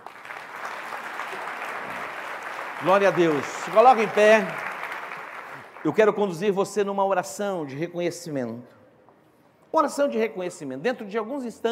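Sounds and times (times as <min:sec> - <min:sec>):
audience applause: 0:00.0 - 0:06.4
speech: 0:02.8 - 0:04.6, 0:05.8 - 0:08.8, 0:09.7 - 0:11.6.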